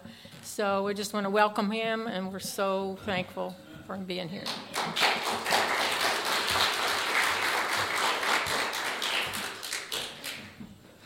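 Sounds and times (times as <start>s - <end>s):
speech: 0.6s - 5.2s
audience applause for the preacher: 4.5s - 10.6s.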